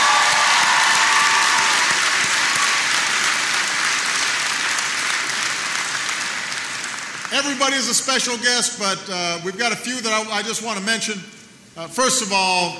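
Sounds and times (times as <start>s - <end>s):
audience applause: 0.0s - 7.6s
speech: 7.4s - 12.7s.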